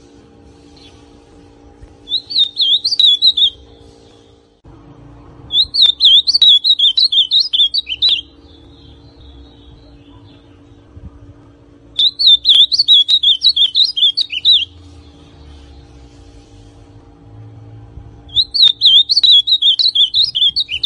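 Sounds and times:
ultramarine grosbeak song: 2.0s - 4.2s, 5.5s - 10.7s, 11.9s - 15.9s, 18.3s - 20.8s.

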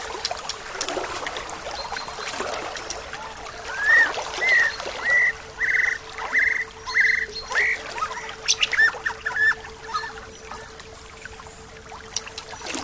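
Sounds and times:
steady low hum: 0.0s - 12.8s
bird whistled song: 3.7s - 12.7s.

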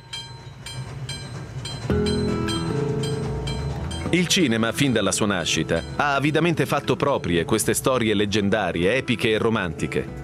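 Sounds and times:
steam train rumbling and chugging on rails: 0.0s - 8.0s
speech: 4.1s - 10.2s.

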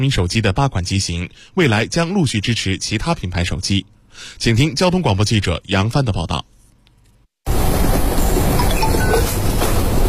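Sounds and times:
speech: 0.0s - 6.5s
subway train rumbling through Zhichunlu station on Beijing Metro Line 10: 7.5s - 10.0s.

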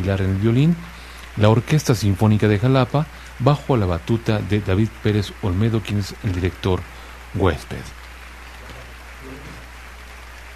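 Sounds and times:
speech: 0.0s - 8.0s
audience ovation applause: 0.0s - 10.5s.

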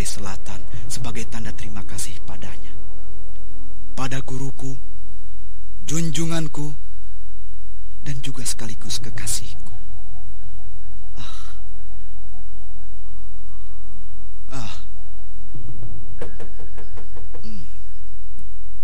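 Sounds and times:
steady low hum: 0.0s - 18.8s
speech: 0.2s - 3.0s, 4.0s - 4.9s, 5.9s - 6.8s, 8.0s - 9.8s
breathy sighs: 11.1s - 11.8s, 14.5s - 15.0s
knocking on an unlocked door at night: 15.8s - 17.6s.

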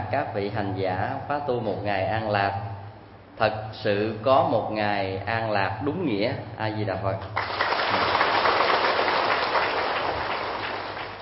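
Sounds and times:
speech: 0.1s - 2.7s, 3.4s - 8.2s
crowd applauding: 7.4s - 11.2s.

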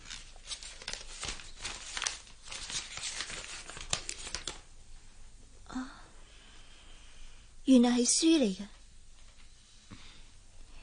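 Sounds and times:
gift wrapping torn open around a set of twenty books: 0.0s - 4.7s
speech: 7.7s - 8.8s.

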